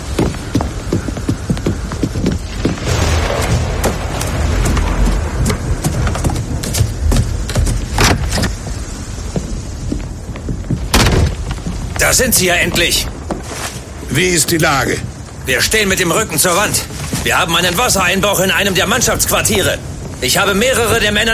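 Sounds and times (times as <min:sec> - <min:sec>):
hurricane storm raging: 0:00.0 - 0:21.3
speech: 0:12.1 - 0:13.1, 0:14.1 - 0:21.3.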